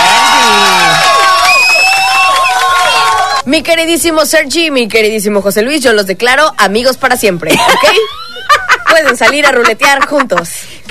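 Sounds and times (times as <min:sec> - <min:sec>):
audience cheering and shouting in applause: 0:00.0 - 0:03.4
speech: 0:03.5 - 0:10.8.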